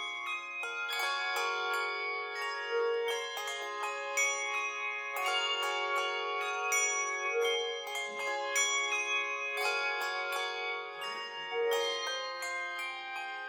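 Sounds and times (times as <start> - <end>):
carillon bells: 0.0 - 13.4.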